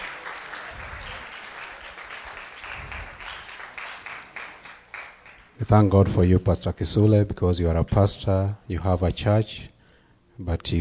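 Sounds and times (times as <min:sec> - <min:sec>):
audience clapping: 0:00.0 - 0:05.6
speech: 0:05.6 - 0:09.7, 0:10.4 - 0:10.7.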